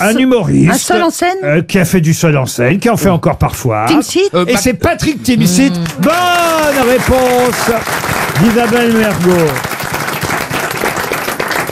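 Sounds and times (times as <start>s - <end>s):
speech: 0.0s - 9.7s
hand clapping applause: 5.8s - 11.7s.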